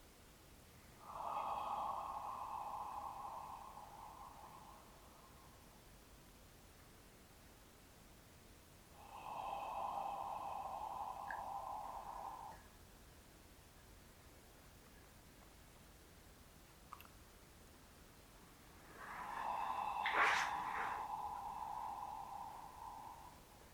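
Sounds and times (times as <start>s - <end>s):
long out-breaths through an open relaxed throat: 1.0s - 5.9s, 8.9s - 12.7s, 18.7s - 23.7s.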